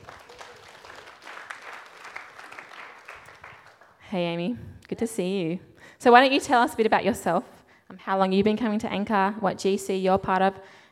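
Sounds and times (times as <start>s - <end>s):
crowd applause: 0.0s - 4.0s
speech: 4.1s - 10.8s.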